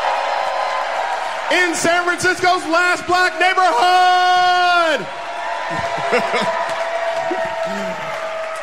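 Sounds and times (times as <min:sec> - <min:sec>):
audience cheering and applause: 0:00.0 - 0:08.6
speech: 0:01.5 - 0:06.6
laughter: 0:05.7 - 0:08.4.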